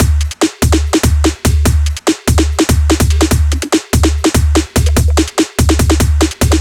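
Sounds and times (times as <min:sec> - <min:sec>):
drum loops at 145 BPM: 0:00.0 - 0:06.6.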